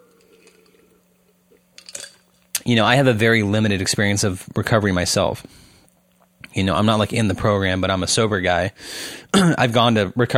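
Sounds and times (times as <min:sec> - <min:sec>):
person sipping and swallowing water: 0:00.0 - 0:02.6
speech: 0:02.6 - 0:05.6, 0:06.6 - 0:10.3.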